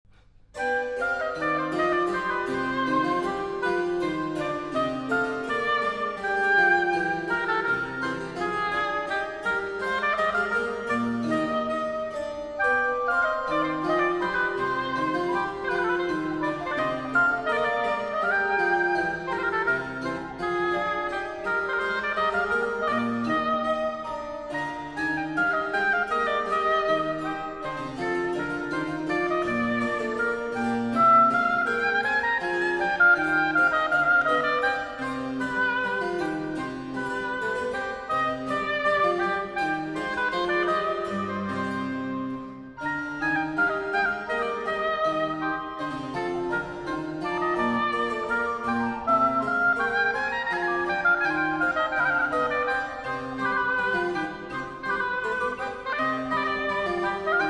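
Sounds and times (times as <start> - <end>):
bourree anglaise piece: 0.1 - 57.4.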